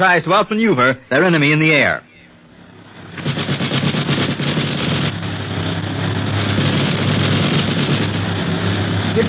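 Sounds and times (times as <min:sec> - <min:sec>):
speech: 0:00.0 - 0:02.1
aircraft engine drone: 0:00.0 - 0:09.2
machine gun fire from an aircraft: 0:03.0 - 0:05.3, 0:06.1 - 0:08.3.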